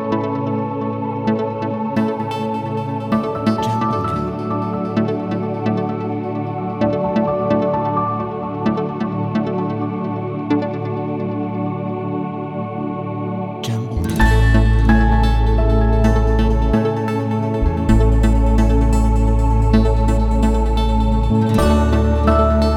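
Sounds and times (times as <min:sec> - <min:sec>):
ambient background relaxation music: 0:00.0 - 0:22.7.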